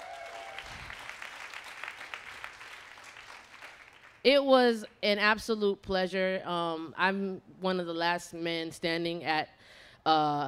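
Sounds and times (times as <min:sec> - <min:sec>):
audience clapping: 0:00.0 - 0:04.2
speech: 0:04.2 - 0:10.4.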